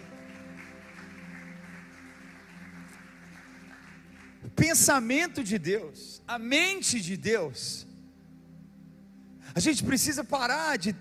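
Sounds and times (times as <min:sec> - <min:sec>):
audience applauding: 0:00.0 - 0:04.6
speech: 0:04.5 - 0:07.9, 0:09.6 - 0:10.9.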